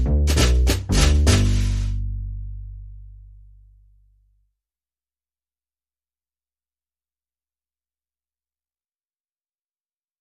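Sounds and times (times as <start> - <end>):
percussion: 0.0 - 2.0
bass: 0.0 - 4.5.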